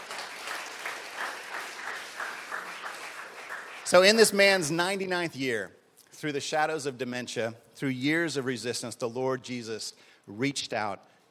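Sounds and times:
audience applause: 0:00.0 - 0:04.2
speech: 0:03.9 - 0:11.1.

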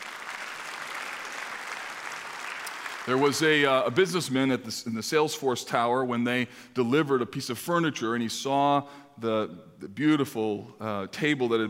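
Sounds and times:
audience applause: 0:00.0 - 0:04.0
speech: 0:03.1 - 0:11.6.

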